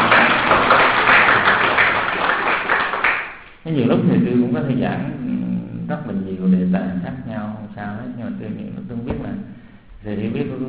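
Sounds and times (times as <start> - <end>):
audience applause: 0.0 - 3.5
speech: 3.7 - 5.3, 5.9 - 10.6.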